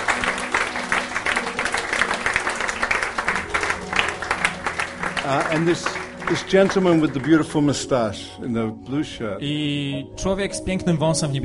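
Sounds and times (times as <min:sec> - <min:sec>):
audience clapping: 0:00.0 - 0:08.1
speech: 0:05.3 - 0:11.4.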